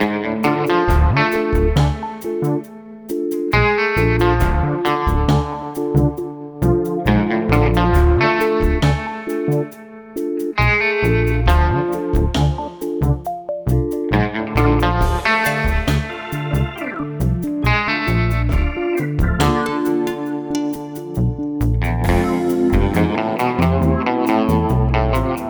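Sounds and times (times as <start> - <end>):
zombie music loop: 0.0 - 25.4.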